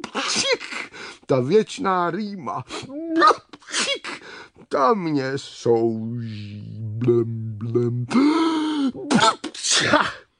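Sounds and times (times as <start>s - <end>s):
loud sneeze: 0.0s - 0.9s, 3.2s - 4.2s, 9.0s - 10.3s
speech: 1.3s - 10.2s.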